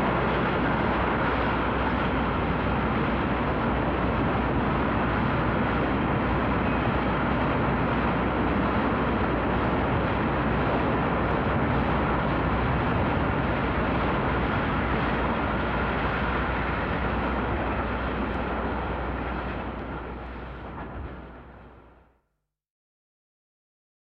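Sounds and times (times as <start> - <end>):
Illinois Central steam locomotive at a railway station: 0.0 - 22.1.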